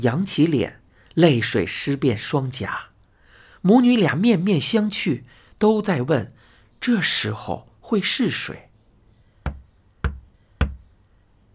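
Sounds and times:
speech: 0.0s - 2.9s, 3.6s - 8.7s
knocking on a door: 9.4s - 10.9s.

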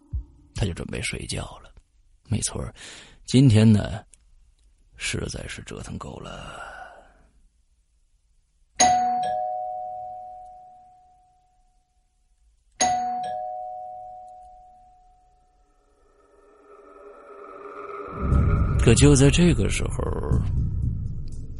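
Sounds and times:
speech: 0.6s - 1.7s, 2.3s - 4.1s, 5.0s - 6.7s, 18.8s - 20.8s
doorbell ringing in a living room: 8.8s - 11.3s, 12.8s - 15.6s.

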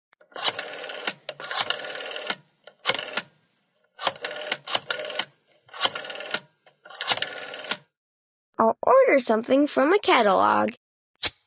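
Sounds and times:
dialing a telephone: 0.2s - 3.3s, 4.0s - 7.9s
speech: 9.0s - 10.8s.

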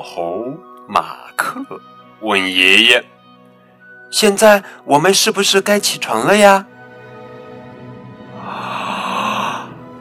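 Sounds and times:
speech: 0.0s - 3.1s, 4.1s - 6.8s
big yawn: 8.3s - 9.8s.

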